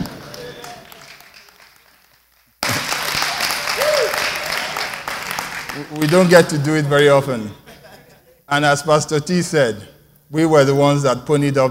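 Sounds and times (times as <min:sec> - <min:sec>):
audience applause: 0:00.0 - 0:06.4
speech: 0:05.8 - 0:07.6, 0:08.5 - 0:11.7
laughter: 0:07.6 - 0:08.4.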